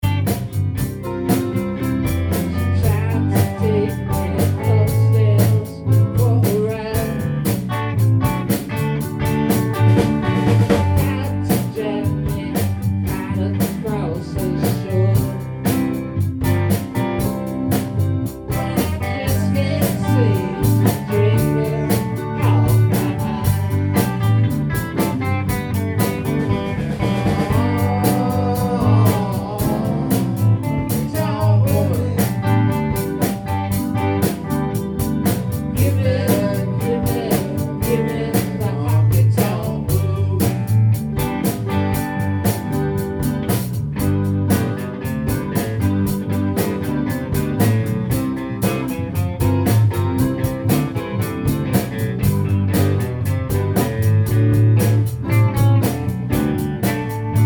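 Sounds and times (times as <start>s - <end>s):
honky tonk music: 0.0s - 57.4s.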